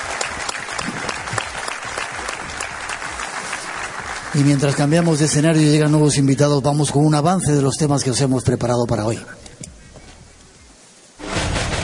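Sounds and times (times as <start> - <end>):
audience applause: 0.0 - 5.9
speech: 4.4 - 9.4.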